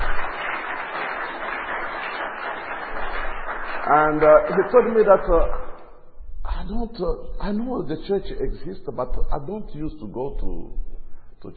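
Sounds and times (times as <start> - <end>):
crowd clapping: 0.0 - 6.0
speech: 3.9 - 5.6, 6.7 - 10.8, 11.4 - 11.5.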